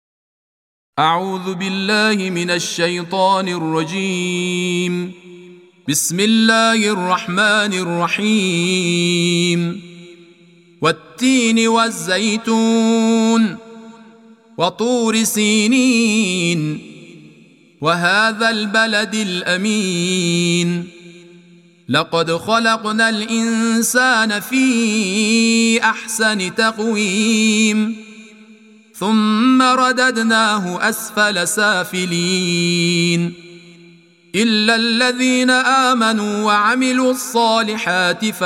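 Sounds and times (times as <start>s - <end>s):
Quran recitation: 1.0s - 38.4s.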